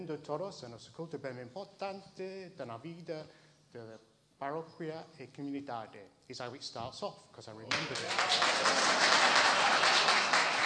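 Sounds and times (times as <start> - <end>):
speech: 0.0 - 10.3
audience applause at a parish community service: 7.7 - 10.6.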